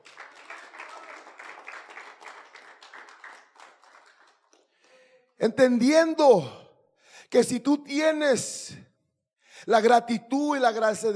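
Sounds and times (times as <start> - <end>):
audience applause: 0.0 - 4.6
speech: 5.4 - 6.6, 7.3 - 8.8, 9.6 - 11.1.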